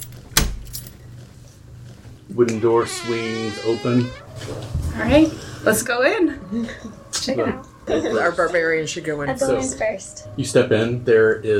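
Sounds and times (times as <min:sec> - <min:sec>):
lock picking tools rattling in lock: 0:00.0 - 0:01.1
speech: 0:02.4 - 0:11.5.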